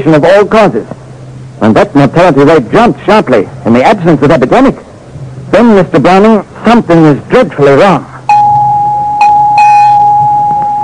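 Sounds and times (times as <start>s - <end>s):
speech: 0.0s - 1.0s, 1.6s - 4.9s, 5.5s - 8.1s
bell signal ringing: 8.3s - 10.8s.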